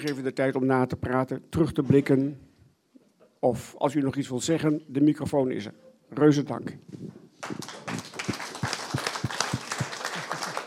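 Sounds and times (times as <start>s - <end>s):
speech: 0.0s - 2.5s, 3.4s - 8.1s
audience applause: 7.4s - 10.6s.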